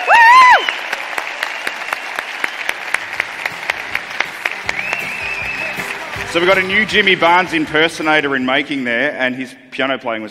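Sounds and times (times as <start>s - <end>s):
audience applause: 0.0s - 7.7s
speech: 6.3s - 10.2s.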